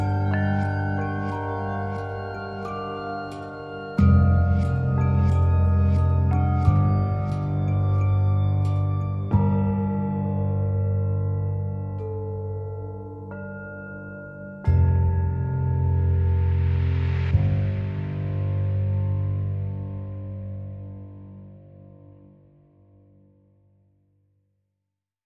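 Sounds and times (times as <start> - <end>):
mallet percussion: 0.0 - 19.0
bass: 0.0 - 23.8.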